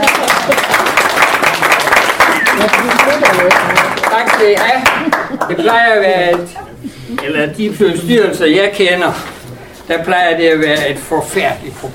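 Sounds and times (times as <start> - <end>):
people applauding: 0.0 - 6.5
speech: 5.5 - 6.6, 7.2 - 9.3, 9.9 - 11.9.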